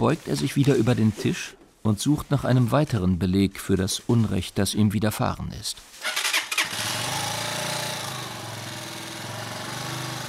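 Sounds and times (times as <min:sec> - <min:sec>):
speech: 0:00.0 - 0:06.9
moped engine starting and riding off: 0:06.0 - 0:10.2.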